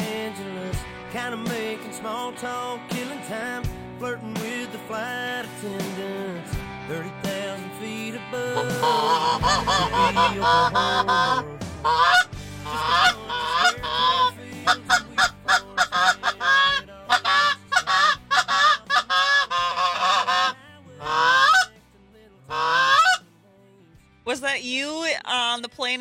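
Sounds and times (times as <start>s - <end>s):
speech: 1.2s - 12.2s, 24.4s - 26.0s
flock of geese honking: 8.6s - 21.8s, 22.5s - 23.2s.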